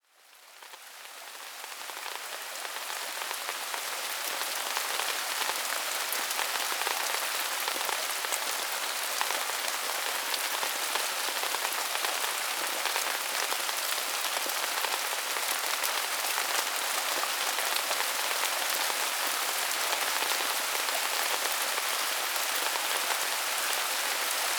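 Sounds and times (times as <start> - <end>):
rain: 0.0 - 24.5.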